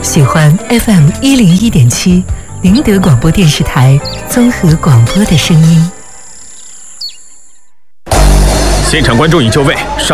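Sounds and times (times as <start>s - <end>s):
speech: 0.1s - 6.0s, 8.9s - 10.1s
bird chirp: 3.4s - 7.8s.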